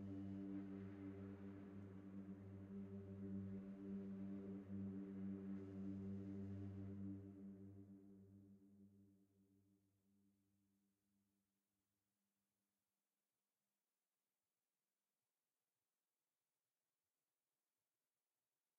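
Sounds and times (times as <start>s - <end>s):
ambient music: 0.0s - 8.2s.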